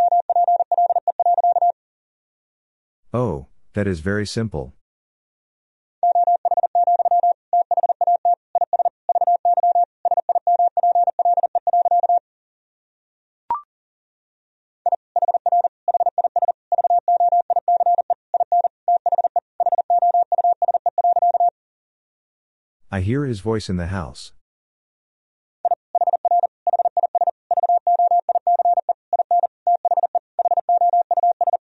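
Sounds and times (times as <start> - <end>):
fast Morse code tones at about 40 words per minute: 0.0 - 1.8, 6.0 - 12.2, 14.9 - 21.5, 25.7 - 31.6
speech: 3.1 - 4.8, 23.0 - 24.4.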